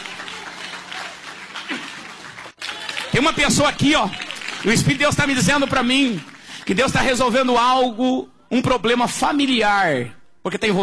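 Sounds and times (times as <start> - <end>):
congregation clapping during a church service: 0.0 - 7.7
speech: 3.2 - 10.8.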